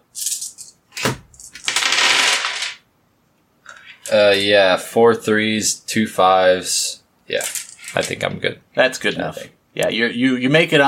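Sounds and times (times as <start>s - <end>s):
dice clattering across a hard surface: 1.5s - 2.8s
speech: 4.1s - 10.8s.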